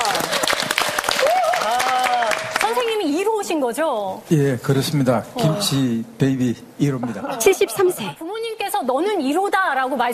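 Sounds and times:
audience applause welcoming a guest of honour: 0.0 - 3.0
speech: 3.6 - 10.1.

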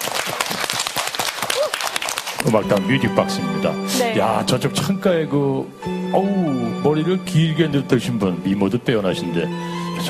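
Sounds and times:
audience applause at a music-hall event: 0.0 - 2.6
speech: 2.4 - 10.0.

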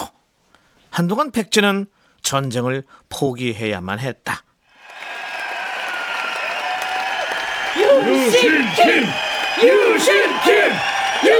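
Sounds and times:
speech: 1.0 - 4.5, 8.0 - 11.3
crowd cheering: 4.8 - 11.3.

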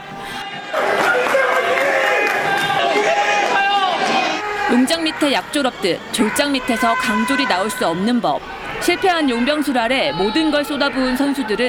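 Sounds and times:
fans applauding returning players: 0.0 - 4.9
speech: 4.7 - 11.6.

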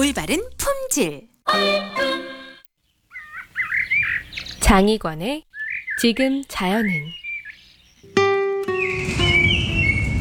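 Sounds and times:
speech: 0.0 - 2.2, 4.6 - 7.2
Chinese blackbird singing in a city park in Nanjing: 2.8 - 4.8, 5.5 - 10.1.

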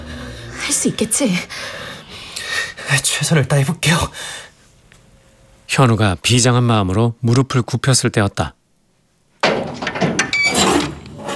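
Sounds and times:
speech: 0.7 - 1.8, 2.9 - 4.5, 5.8 - 8.6
door creaking open: 9.4 - 11.3.

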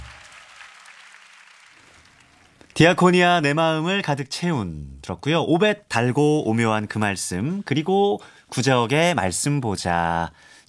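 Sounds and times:
audience applause: 0.0 - 2.5
speech: 2.8 - 10.6.

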